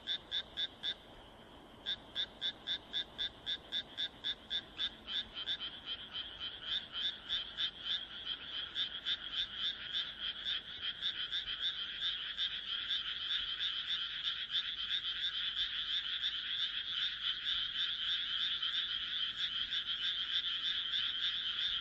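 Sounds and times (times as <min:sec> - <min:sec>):
frogs croaking: 0:00.0 - 0:21.8.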